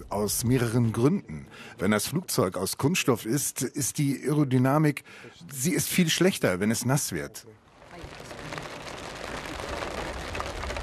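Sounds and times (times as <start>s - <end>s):
speech: 0.1s - 8.2s
rain falling: 7.7s - 10.8s.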